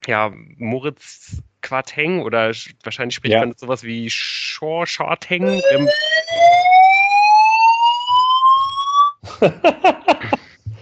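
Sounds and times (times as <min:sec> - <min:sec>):
speech: 0:00.0 - 0:06.6, 0:09.4 - 0:10.2
laughter: 0:03.3 - 0:03.5, 0:05.4 - 0:05.9, 0:09.2 - 0:10.8
fire alarm with rising tone and pulsing blasts: 0:05.5 - 0:09.2.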